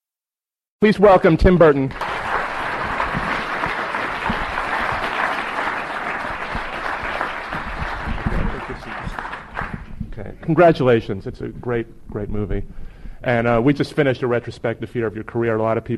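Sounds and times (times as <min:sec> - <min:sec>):
speech: 0:00.8 - 0:02.0, 0:10.5 - 0:15.9
audience applause: 0:01.9 - 0:09.9.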